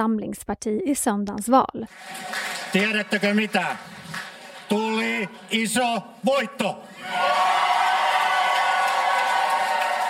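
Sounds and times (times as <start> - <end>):
speech: 0.0 - 7.6
supporters cheering at election night party: 1.9 - 10.0
whoops: 7.0 - 10.0.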